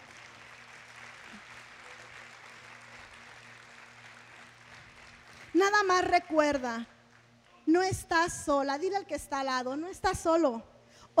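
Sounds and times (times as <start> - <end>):
audience applauding: 0.0 - 5.8
speech: 5.6 - 6.9, 7.8 - 11.1.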